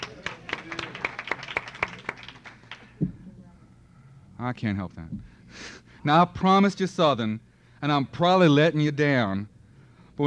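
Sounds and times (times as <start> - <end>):
sparse audience applause: 0.0 - 3.0
speech: 4.4 - 9.5.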